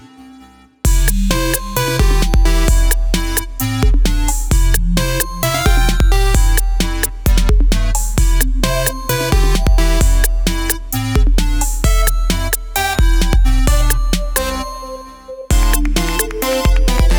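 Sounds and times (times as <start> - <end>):
808 drum machine kit: 0.9 - 17.1.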